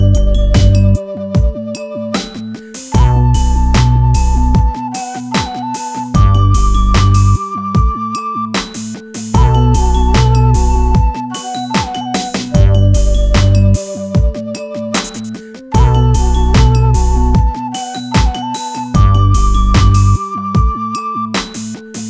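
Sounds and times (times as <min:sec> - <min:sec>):
exotica hip hop beat in B minor at 75 BPM: 0:00.0 - 0:22.0.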